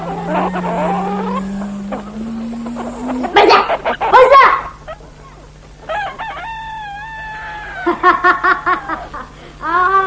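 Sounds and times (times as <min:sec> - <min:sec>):
turkey gobbling: 0:00.0 - 0:08.0.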